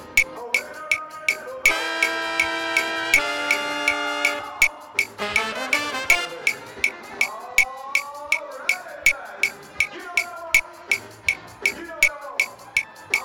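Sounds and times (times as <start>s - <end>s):
band playing: 0.0s - 13.2s.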